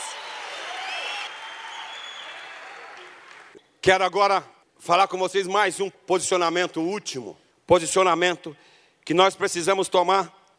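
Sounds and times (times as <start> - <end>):
applause: 0.0 - 3.6
speech: 3.8 - 10.4.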